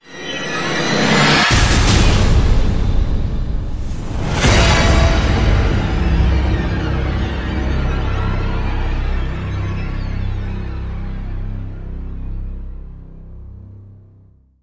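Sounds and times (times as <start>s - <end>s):
musical hit in C: 0.1s - 11.6s.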